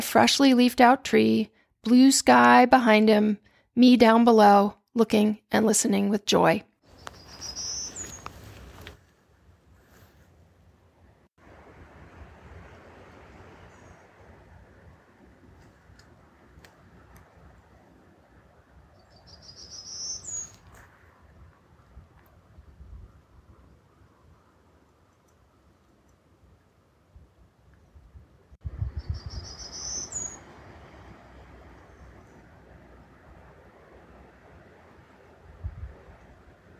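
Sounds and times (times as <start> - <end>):
speech: 0.0 - 6.7
golden-cheeked warbler singing: 6.9 - 8.4, 19.0 - 20.7, 28.8 - 30.5
faint steady wind-like hiss: 6.9 - 10.7, 11.4 - 36.7.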